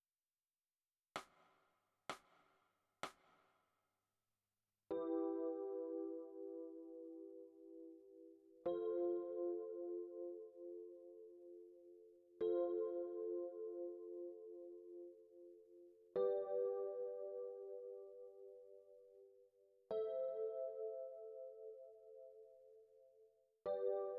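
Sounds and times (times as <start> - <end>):
electric piano: 4.9 - 24.1.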